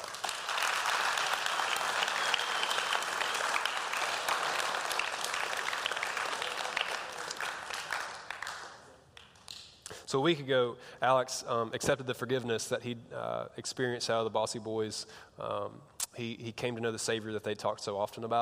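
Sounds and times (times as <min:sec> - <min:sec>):
large audience applause: 0:00.0 - 0:09.3
speech: 0:10.1 - 0:18.4.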